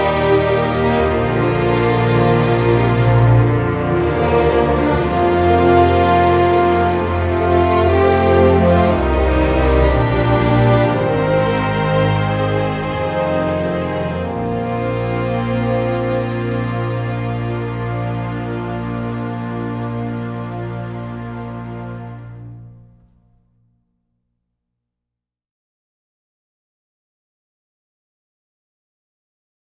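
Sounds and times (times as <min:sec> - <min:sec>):
trumpet: 0:00.0 - 0:23.1.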